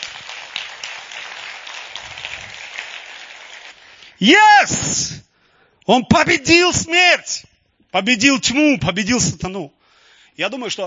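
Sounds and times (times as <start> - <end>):
audience applause: 0.0 - 4.2
speech: 4.2 - 5.3, 5.9 - 9.8, 10.4 - 10.8.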